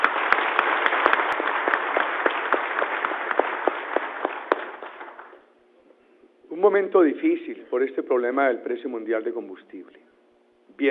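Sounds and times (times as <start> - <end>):
applause: 0.0 - 5.4
speech: 6.7 - 10.0.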